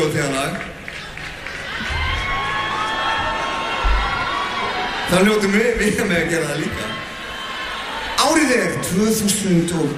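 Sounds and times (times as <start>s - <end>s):
audience cheering a guest on stage: 0.8s - 9.9s
speech: 5.1s - 7.0s, 8.4s - 9.9s.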